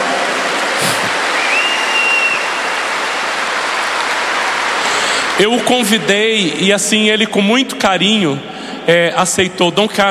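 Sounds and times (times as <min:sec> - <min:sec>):
loud round of applause: 0:00.0 - 0:06.8
speech: 0:05.4 - 0:10.0.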